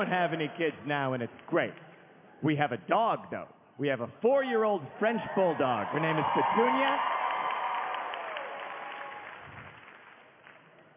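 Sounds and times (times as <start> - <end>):
speech: 0.0 - 7.1
audience applauding: 5.4 - 10.9.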